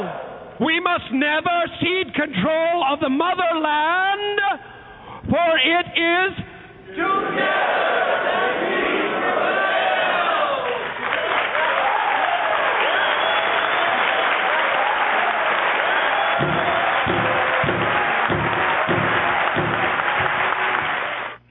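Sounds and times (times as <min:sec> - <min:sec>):
speech: 0:00.1 - 0:08.3
crowd cheering: 0:07.0 - 0:21.4
crowd clapping: 0:10.1 - 0:21.4.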